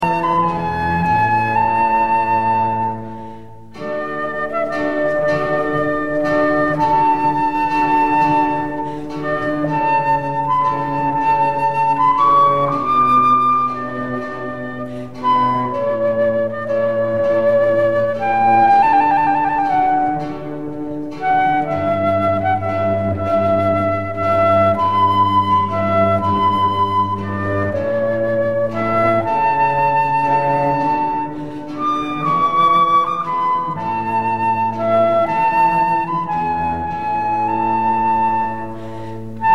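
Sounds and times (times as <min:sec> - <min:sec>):
flute concerto in D: 0:00.0 - 0:39.5.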